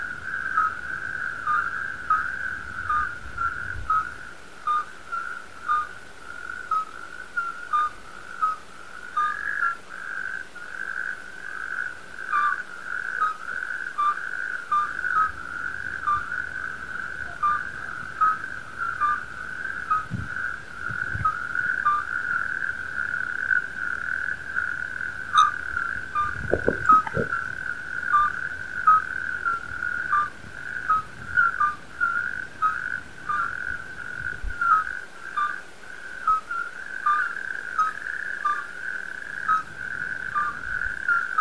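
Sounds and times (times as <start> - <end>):
chorus of midwife toads calling: 0.0 - 41.3.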